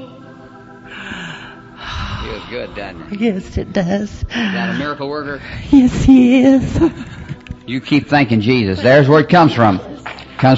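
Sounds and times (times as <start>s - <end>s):
steady hum: 0.0s - 10.4s
deep breath drawn in during a faith-healing prayer: 0.8s - 3.0s, 4.3s - 5.7s
speech: 2.2s - 10.5s.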